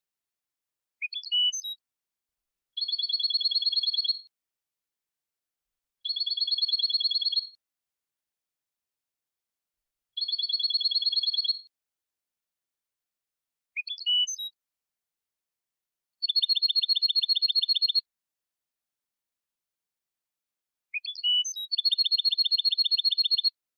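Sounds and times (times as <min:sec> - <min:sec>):
European goldfinch song: 0:01.0 - 0:01.8, 0:02.8 - 0:04.3, 0:06.0 - 0:07.6, 0:10.2 - 0:11.7, 0:13.8 - 0:14.6, 0:16.2 - 0:18.1, 0:20.9 - 0:23.6.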